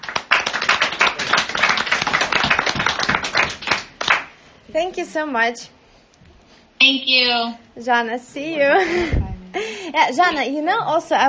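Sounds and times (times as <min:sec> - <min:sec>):
group applause: 0:00.0 - 0:04.4
speech: 0:04.7 - 0:05.8, 0:06.8 - 0:11.2.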